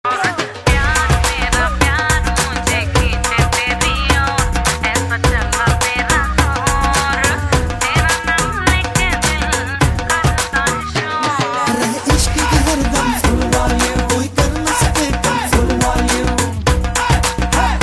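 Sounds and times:
remix music: 0.0s - 17.8s.

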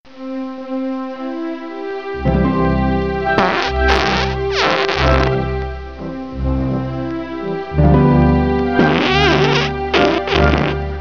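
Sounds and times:
waltz music: 0.3s - 10.9s
farting sounds: 3.3s - 5.4s, 8.8s - 10.8s.

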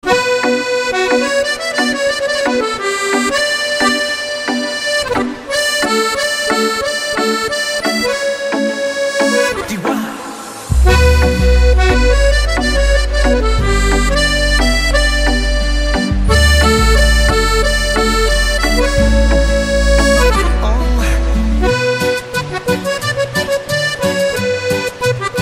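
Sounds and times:
accordion: 0.0s - 25.4s.

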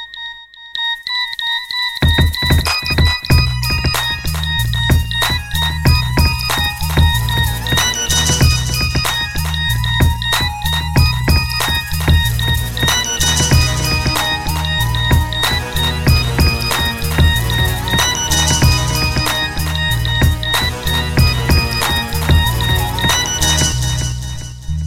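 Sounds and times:
new age music: 0.3s - 24.8s.

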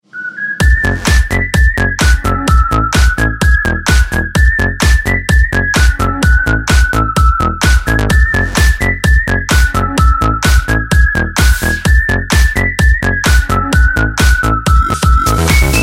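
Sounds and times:
whistle mix: 0.0s - 15.8s.

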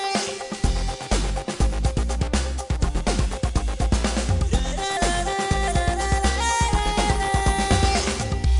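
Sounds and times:
drum: 0.2s - 8.5s.

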